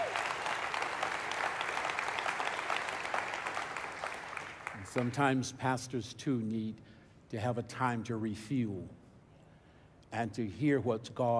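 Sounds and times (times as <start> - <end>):
audience applauding: 0.0 - 5.1
speech: 5.0 - 9.0, 10.1 - 11.3.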